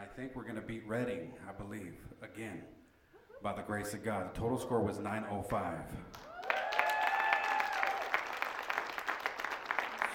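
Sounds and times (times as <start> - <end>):
speech: 0.2 - 2.8, 3.4 - 6.2
audience applause: 6.1 - 10.1.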